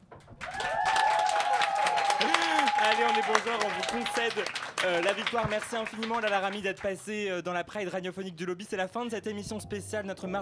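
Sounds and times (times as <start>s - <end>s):
cheers and whistles: 0.4s - 4.6s
audience applause for a vote: 0.4s - 7.2s
speech: 2.9s - 10.4s.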